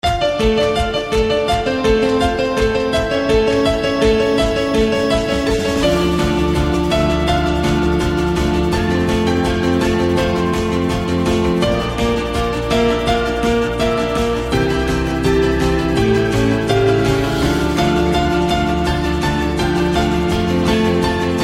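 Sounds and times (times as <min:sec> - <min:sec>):
piano: 0:00.0 - 0:21.4.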